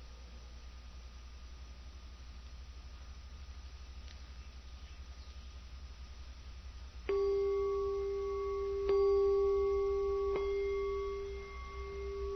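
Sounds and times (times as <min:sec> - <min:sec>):
meditation bell struck: 0:07.1 - 0:12.3.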